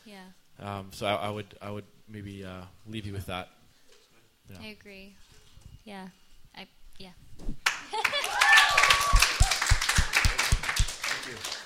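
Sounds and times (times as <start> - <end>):
speech: 0.0 - 3.6, 4.5 - 8.4, 11.2 - 11.6
audience applause: 7.7 - 11.6
faint whoops and voices: 8.1 - 10.3.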